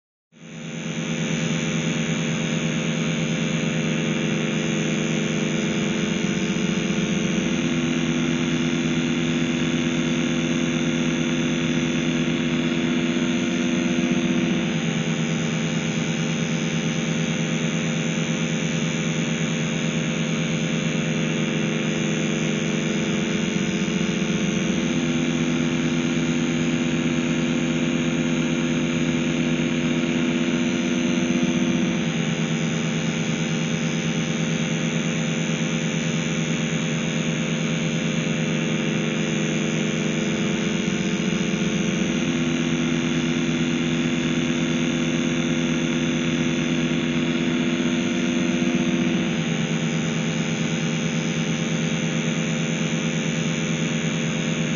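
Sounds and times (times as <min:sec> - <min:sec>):
electric energy field buzz: 0:00.6 - 0:54.7.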